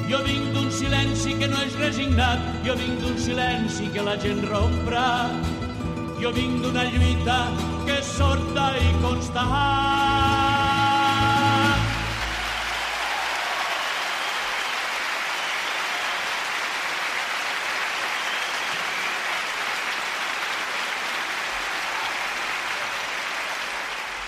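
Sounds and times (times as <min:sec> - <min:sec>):
speech: 0:00.1 - 0:05.6, 0:06.2 - 0:10.5
audience applause: 0:11.7 - 0:24.2.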